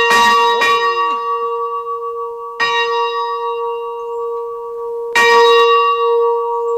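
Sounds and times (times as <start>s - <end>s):
large church bell in a tower at the Polish-Czech-German border tripoint rung by hand: 0.0s - 6.7s.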